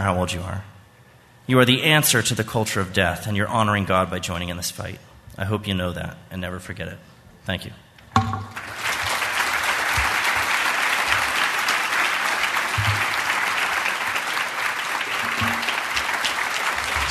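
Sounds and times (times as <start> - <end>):
speech: 0.0 - 0.8, 1.5 - 8.4
audience applause after a speech: 8.5 - 17.0.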